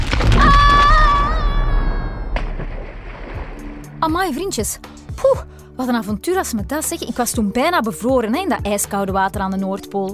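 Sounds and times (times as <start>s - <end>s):
ice sheet cracking and breaking apart: 0.0s - 3.8s
speech: 4.0s - 10.1s.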